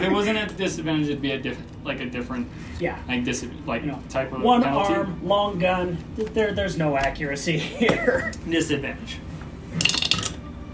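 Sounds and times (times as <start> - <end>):
speech: 0.0 - 9.9
laughter: 7.6 - 8.5
pair of dice clattering across a surface: 9.8 - 10.4.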